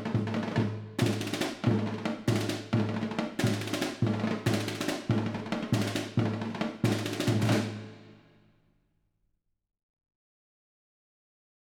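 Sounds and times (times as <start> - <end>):
percussion by massed army bands: 0.0 - 8.0.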